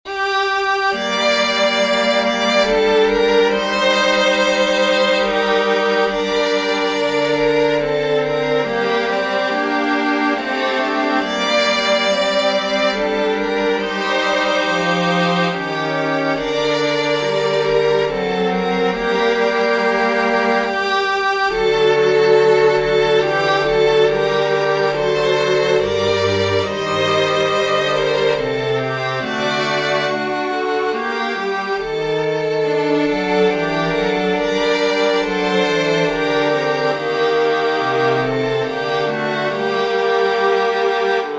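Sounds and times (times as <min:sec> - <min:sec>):
string quartet: 0:00.0 - 0:41.3.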